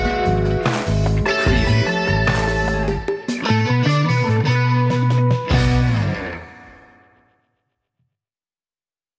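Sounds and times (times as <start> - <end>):
lead guitar: 0.0 - 7.3.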